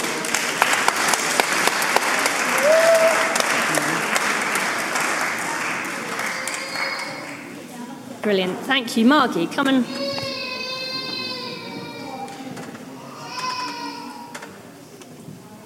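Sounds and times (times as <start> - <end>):
audience applause: 0.0 - 7.6
speech: 8.2 - 10.2.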